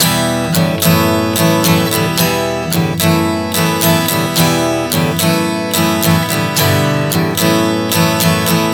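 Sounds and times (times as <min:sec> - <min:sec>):
acoustic guitar chord progression: 0:00.0 - 0:08.7.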